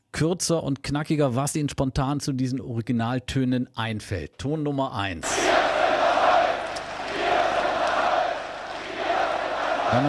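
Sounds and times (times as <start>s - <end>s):
speech: 0.2s - 5.6s
large demonstration crowd chanting a slogan in unison: 5.2s - 10.0s.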